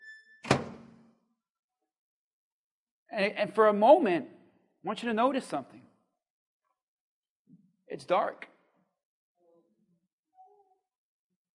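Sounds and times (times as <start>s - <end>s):
microwave door shutting: 0.4s - 1.0s
speech: 3.1s - 5.8s, 7.9s - 8.5s.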